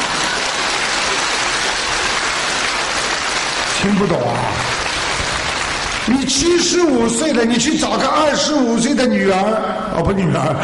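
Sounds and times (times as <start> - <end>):
audience applause: 0.0 - 7.4
speech: 3.8 - 4.9, 6.1 - 10.6.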